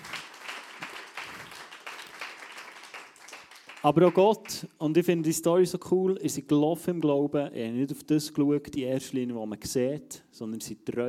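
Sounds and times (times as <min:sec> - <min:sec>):
audience applauding: 0:00.0 - 0:04.6
speech: 0:03.8 - 0:11.0.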